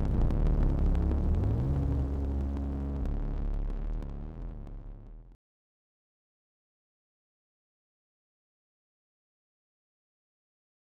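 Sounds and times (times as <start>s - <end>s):
bass: 0.0s - 5.4s.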